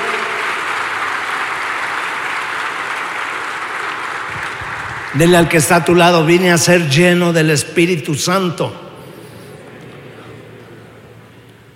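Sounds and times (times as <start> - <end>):
audience applause: 0.0 - 6.2
speech: 5.2 - 8.8.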